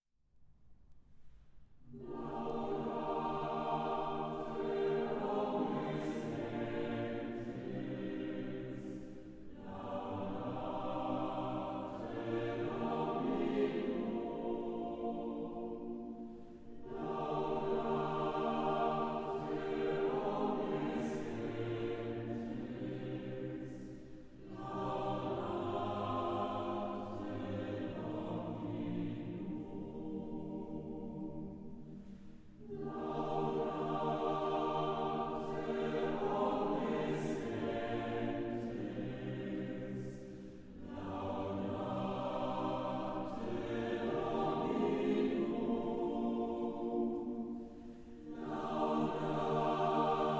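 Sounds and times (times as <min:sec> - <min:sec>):
choir singing: 0:01.9 - 0:50.3.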